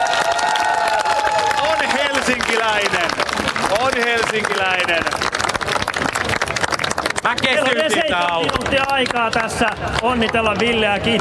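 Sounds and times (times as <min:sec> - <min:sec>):
voices cheering and whooping: 0:00.0 - 0:02.2
crowd applauding: 0:00.0 - 0:11.1
speech: 0:02.3 - 0:05.2, 0:07.2 - 0:11.1.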